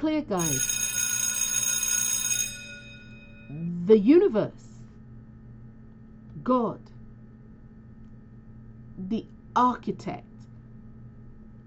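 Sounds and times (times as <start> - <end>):
speech: 0.0 - 0.8, 3.5 - 4.6, 6.4 - 6.9, 9.0 - 10.3
bell ringing: 0.4 - 3.6.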